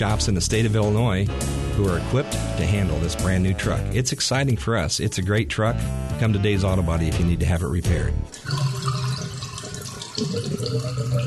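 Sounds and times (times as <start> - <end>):
speech: 0.0 - 8.6
water gurgling through drain: 8.3 - 11.2.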